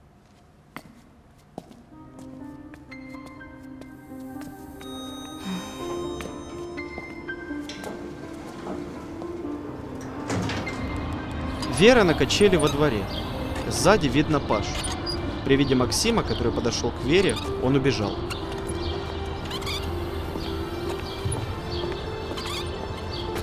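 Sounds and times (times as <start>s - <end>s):
elevator doors opening: 4.8s - 23.4s
speech: 11.8s - 18.4s.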